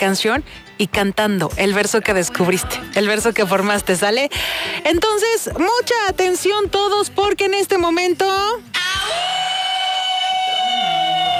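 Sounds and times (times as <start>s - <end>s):
speech: 0.0s - 9.3s
she-wolf howling: 8.7s - 11.3s.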